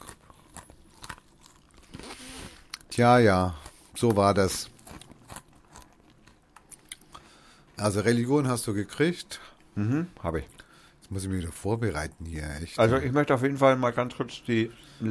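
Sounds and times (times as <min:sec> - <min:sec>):
crunching on pretzel sticks: 0:00.0 - 0:07.3
speech: 0:03.0 - 0:04.7, 0:07.8 - 0:15.0.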